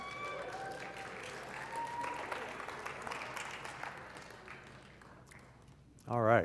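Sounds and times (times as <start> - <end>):
audience cheering: 0.0 - 4.0.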